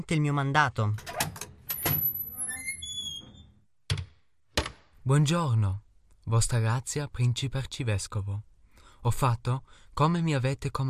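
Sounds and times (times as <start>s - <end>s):
speech: 0.0s - 1.1s, 5.1s - 10.8s
large front door creaking open: 0.9s - 4.8s
sharp thud of a large front door: 3.9s - 4.9s.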